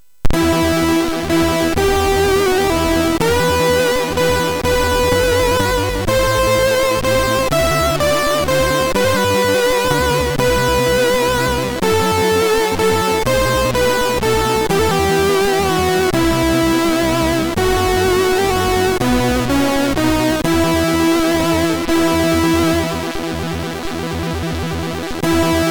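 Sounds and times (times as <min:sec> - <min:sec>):
Swedish folk song on a MOS6581R3 SID chip: 0:00.2 - 0:25.7.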